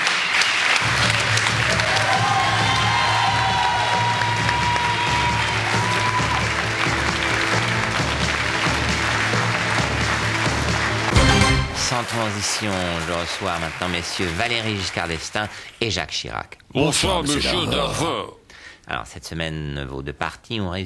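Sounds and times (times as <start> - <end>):
audience applause at an anniversary comedy television show: 0.0 - 15.8
speech: 12.1 - 20.8.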